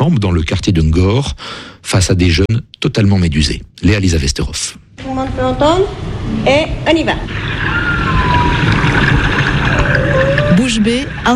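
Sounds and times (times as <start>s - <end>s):
speech: 0.0s - 7.9s, 10.6s - 11.3s
low underwater rumbling noise: 6.0s - 11.3s
humpback whale song recorded off Dakar: 7.2s - 11.3s.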